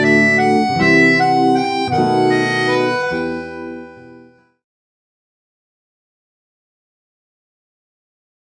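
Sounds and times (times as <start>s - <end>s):
theatre accordionist playing accordion: 0.0s - 4.6s.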